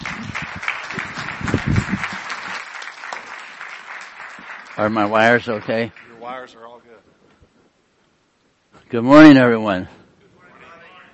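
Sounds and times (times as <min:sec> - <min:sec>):
studio audience applause welcoming a guest: 0:00.0 - 0:06.8
speech: 0:04.8 - 0:07.1, 0:08.9 - 0:10.0.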